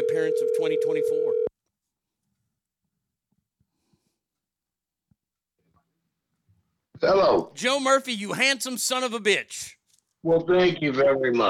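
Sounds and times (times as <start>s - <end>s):
telephone line tone: 0.0s - 1.5s
speech: 0.2s - 1.5s, 7.0s - 11.4s.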